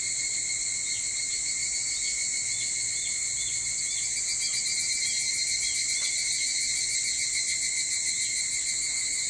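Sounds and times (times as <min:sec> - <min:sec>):
evening cicadas droning: 0:00.0 - 0:09.2.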